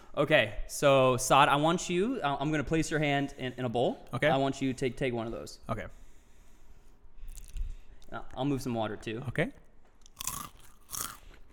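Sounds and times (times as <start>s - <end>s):
speech: 0.2s - 6.0s, 8.1s - 9.6s
crunching Takis chips: 7.3s - 7.7s, 10.0s - 11.5s.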